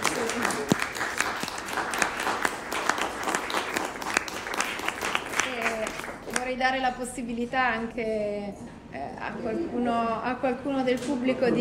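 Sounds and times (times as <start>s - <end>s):
audience applause: 0.0s - 6.5s
speech: 6.6s - 11.5s.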